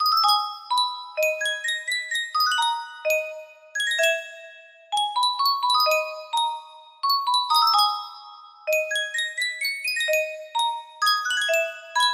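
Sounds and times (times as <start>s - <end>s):
Sankyo music box melody: 0.0s - 12.1s.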